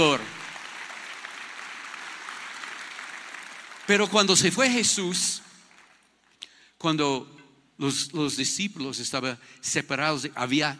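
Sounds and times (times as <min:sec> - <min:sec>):
loud applause from audience: 0:00.0 - 0:06.1
speech: 0:03.9 - 0:05.5, 0:06.8 - 0:10.7.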